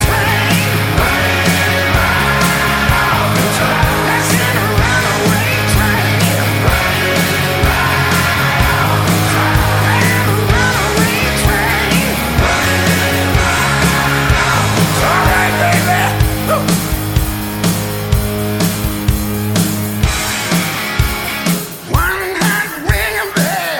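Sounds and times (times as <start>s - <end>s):
rock music: 0.0s - 23.7s.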